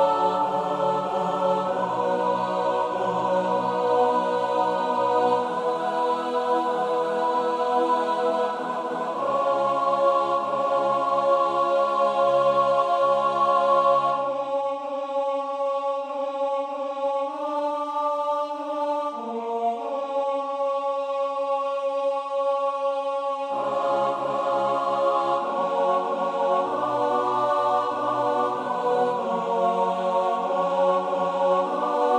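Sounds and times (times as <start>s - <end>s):
SATB choir singing in English: 0.0s - 32.1s.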